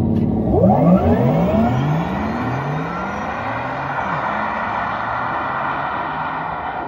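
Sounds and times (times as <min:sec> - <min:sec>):
Porsche Taycan 4S electric car futuristic synthetic drive sound: 0:00.1 - 0:06.7.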